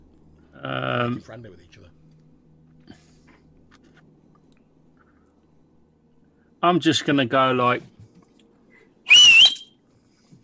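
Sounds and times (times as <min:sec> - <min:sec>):
speech: 0:00.6 - 0:02.0, 0:06.6 - 0:07.9
person whistling a short high note: 0:09.1 - 0:09.8.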